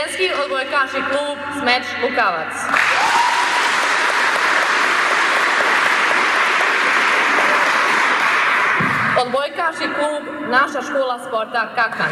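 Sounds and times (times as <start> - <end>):
speech: 0.2 - 2.8, 9.2 - 12.1
crowd applause welcoming a women's volleyball team: 2.7 - 9.2.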